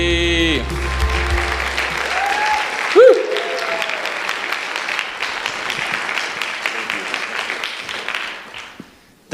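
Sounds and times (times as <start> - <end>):
loud vocal call: 0.0 - 4.2
church audience applauding to welcome a deacon: 0.6 - 9.1.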